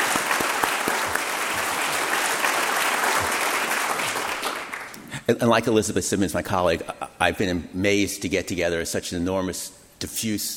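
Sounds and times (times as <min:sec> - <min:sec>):
audience applause: 0:00.0 - 0:05.0
speech: 0:05.3 - 0:10.5.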